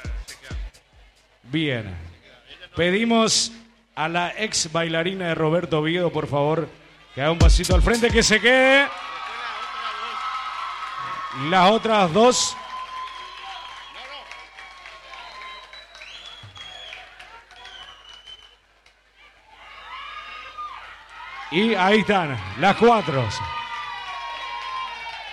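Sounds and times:
speech: 0:01.5 - 0:02.1, 0:02.8 - 0:09.1, 0:11.4 - 0:12.6, 0:21.5 - 0:23.6
audience applause: 0:07.9 - 0:25.3.

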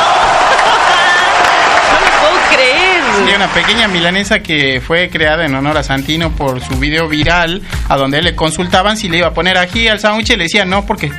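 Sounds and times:
audience applause: 0:00.0 - 0:04.4
speech: 0:03.4 - 0:11.1.

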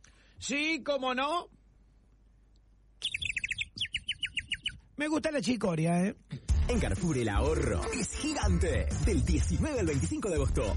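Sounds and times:
speech: 0:00.4 - 0:01.6, 0:05.0 - 0:10.7
person whistling an imitation of bird chirping: 0:03.0 - 0:04.8.

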